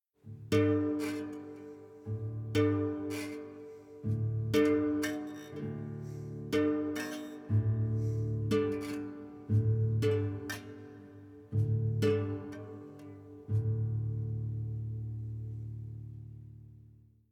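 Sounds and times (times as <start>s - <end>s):
savannah-themed music: 0.2s - 17.3s.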